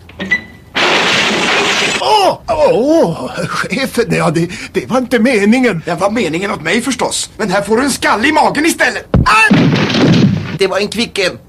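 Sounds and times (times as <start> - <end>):
clay pot thrown and shattering: 0.7 - 2.0, 9.5 - 10.6
speech: 2.0 - 9.6, 10.6 - 11.4.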